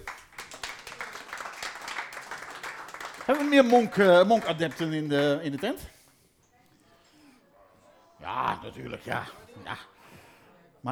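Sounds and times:
audience applause: 0:00.0 - 0:05.7
speech: 0:03.3 - 0:06.0, 0:08.7 - 0:10.0.

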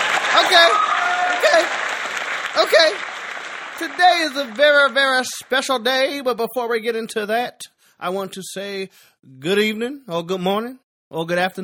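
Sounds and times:
audience clapping: 0:00.0 - 0:06.2
speech: 0:03.8 - 0:11.6.

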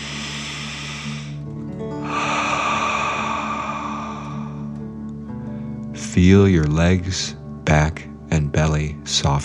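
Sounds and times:
deep breath in and out: 0:00.0 - 0:05.9
speech: 0:06.1 - 0:09.4.

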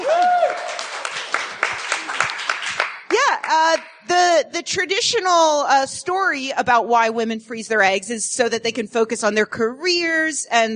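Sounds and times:
audience scattered claps: 0:00.4 - 0:04.0
speech: 0:03.5 - 0:10.7.

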